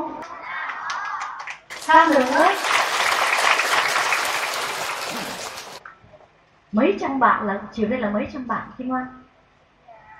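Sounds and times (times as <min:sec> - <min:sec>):
audience of several hundred students applauding: 0:00.8 - 0:05.8
speech: 0:01.9 - 0:02.7, 0:06.7 - 0:09.2.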